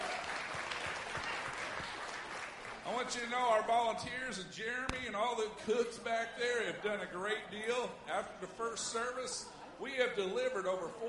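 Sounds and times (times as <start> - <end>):
audience applause: 0.0 - 3.1
speech: 2.9 - 11.0.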